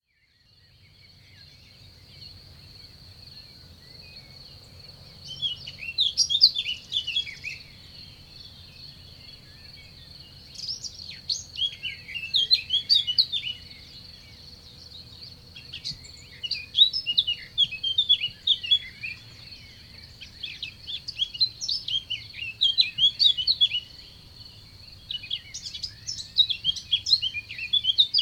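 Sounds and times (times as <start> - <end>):
bird twittering: 5.2 - 7.8, 9.4 - 28.2.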